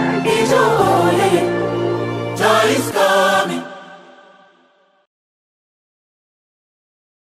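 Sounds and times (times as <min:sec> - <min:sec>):
loud urban choir singing: 0:00.1 - 0:05.0.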